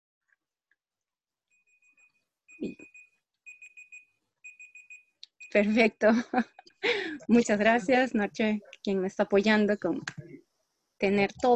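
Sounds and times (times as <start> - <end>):
electronic timer alarm beeping to signal speaking time: 1.5 - 6.0
speech: 5.5 - 10.3, 11.0 - 11.5.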